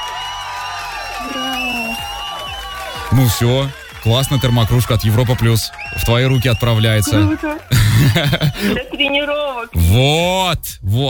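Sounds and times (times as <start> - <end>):
crowd cheering and applause effect for a radio quiz winner: 0.0 - 9.0
whooping voices and gliding shouts: 0.9 - 7.7
speech: 3.1 - 11.0
laughter: 6.8 - 9.5.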